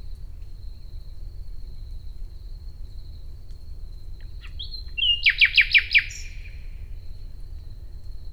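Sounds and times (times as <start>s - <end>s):
nightingale singing in nature: 4.4s - 6.6s.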